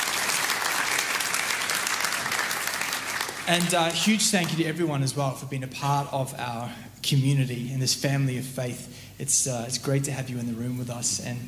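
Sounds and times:
church congregation applause welcoming online viewers: 0.0s - 4.8s
speech: 3.5s - 11.4s.

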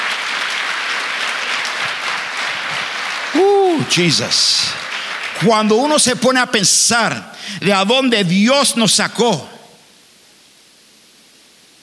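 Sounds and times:
audience applause: 0.0s - 6.1s
speech: 3.8s - 4.8s, 5.4s - 9.6s.

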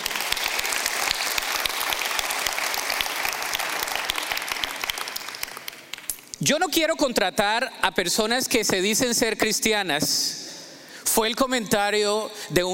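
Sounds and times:
audience applauding: 0.0s - 6.2s
speech: 6.4s - 10.4s, 11.2s - 12.7s.

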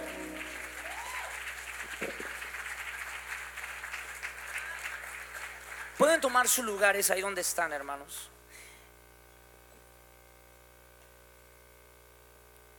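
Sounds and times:
audience applauding: 0.0s - 6.8s
speech: 2.0s - 2.2s, 6.1s - 8.3s.

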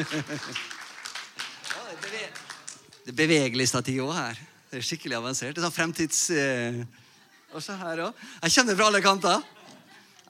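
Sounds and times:
speech: 0.0s - 0.8s, 3.0s - 9.6s
laughter: 0.0s - 0.9s, 8.9s - 10.2s
audience clapping: 0.0s - 3.5s.

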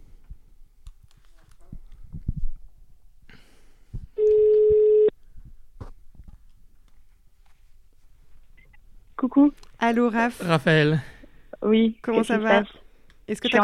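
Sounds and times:
ringback tone from an outgoing phone call: 4.2s - 5.1s
speech: 9.4s - 13.6s.

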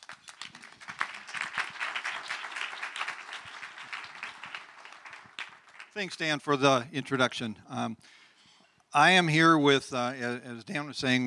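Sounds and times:
audience round of applause: 0.0s - 6.4s
speech: 6.0s - 8.2s, 8.9s - 11.2s.

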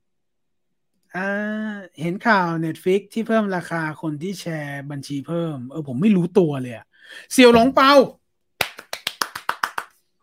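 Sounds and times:
speech: 1.1s - 8.2s
crowd hand clapping: 8.6s - 10.0s.

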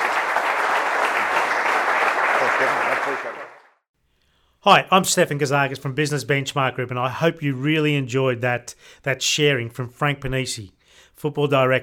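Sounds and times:
audience applause: 0.0s - 3.8s
speech: 2.6s - 3.6s, 4.6s - 11.8s.

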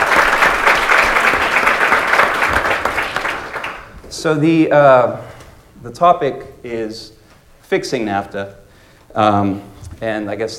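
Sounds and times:
audience applause for panelists: 0.0s - 4.0s
speech: 4.2s - 10.5s.

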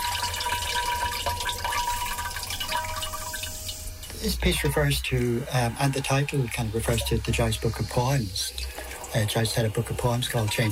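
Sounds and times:
urinating into ceramic chamber pot: 0.0s - 4.2s, 5.5s - 10.6s
speech: 4.2s - 10.6s.

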